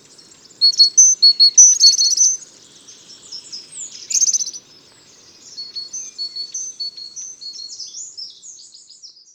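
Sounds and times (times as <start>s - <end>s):
great tit chirping: 0.1s - 7.1s.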